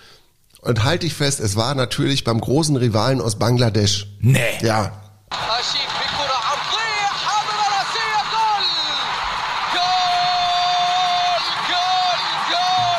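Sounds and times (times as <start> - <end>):
speech: 0.6 - 5.8
crowd roar: 5.3 - 12.9
voices shouting goal after a football goal: 5.3 - 12.9.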